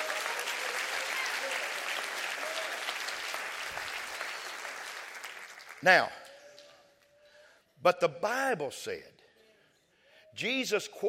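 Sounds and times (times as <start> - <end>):
audience clapping hands: 0.0 - 7.0
speech: 5.8 - 6.2, 7.8 - 9.2, 10.3 - 11.0.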